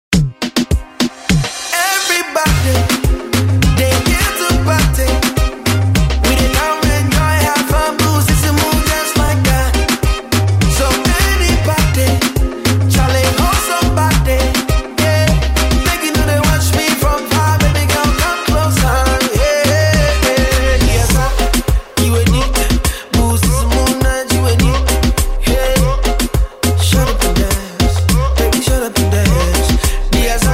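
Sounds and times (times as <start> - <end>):
reggae music: 0.1 - 30.5.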